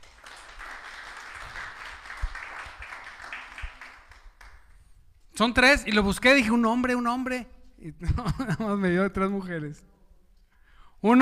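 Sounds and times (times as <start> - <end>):
audience applause: 0.0 - 4.6
speech: 5.4 - 9.9, 11.0 - 11.2
laughter: 8.0 - 8.9.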